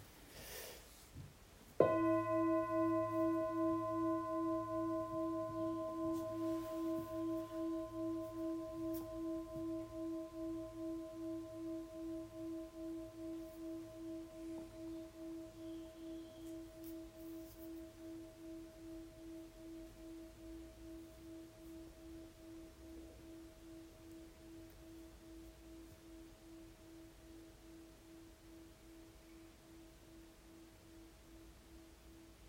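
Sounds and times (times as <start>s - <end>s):
gong ringing: 1.8s - 17.2s.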